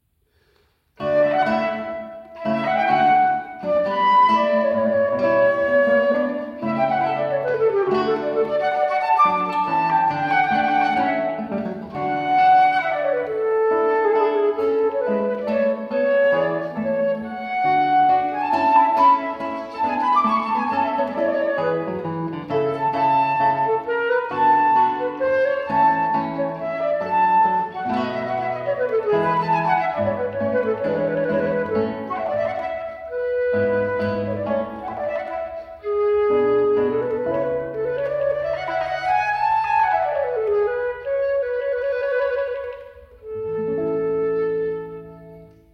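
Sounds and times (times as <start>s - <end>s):
sonata allegro in D major: 1.0s - 45.7s.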